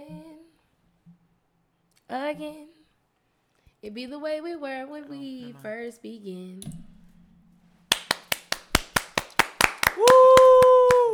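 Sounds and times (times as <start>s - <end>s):
speech: 2.1s - 2.8s, 3.8s - 6.8s
people clapping hands: 7.9s - 11.1s.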